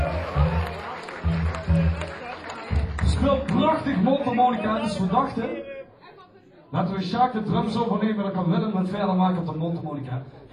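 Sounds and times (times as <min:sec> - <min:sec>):
audience applauding a drummer at a live music show: 0:00.0 - 0:05.3
speech: 0:03.2 - 0:05.7, 0:06.7 - 0:10.5.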